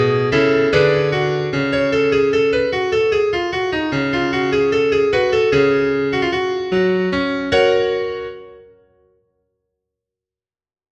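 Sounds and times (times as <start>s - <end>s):
baroque dance piece: 0.0s - 8.4s.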